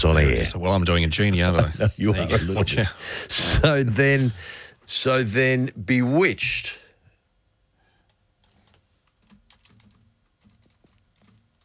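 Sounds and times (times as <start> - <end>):
speech: 0.0 - 6.8
laughter: 0.3 - 4.4
quiet typing on a computer keyboard: 8.4 - 11.6.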